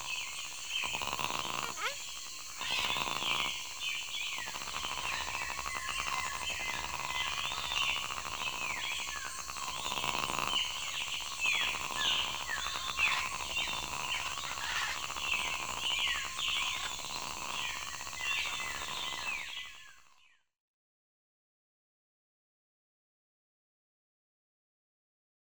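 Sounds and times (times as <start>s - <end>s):
forest wildlife: 0.0s - 20.3s.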